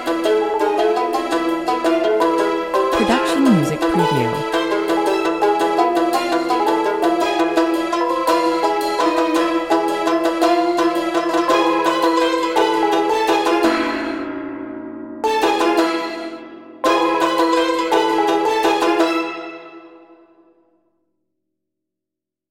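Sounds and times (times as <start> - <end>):
Persian-style instrumental music at 112 bpm: 0.0 - 14.4, 15.2 - 20.6.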